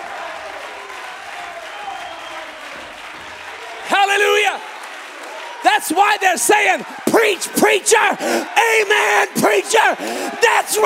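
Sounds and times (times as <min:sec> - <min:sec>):
audience clapping: 0:00.0 - 0:08.2
speech: 0:04.1 - 0:04.7, 0:05.8 - 0:10.8.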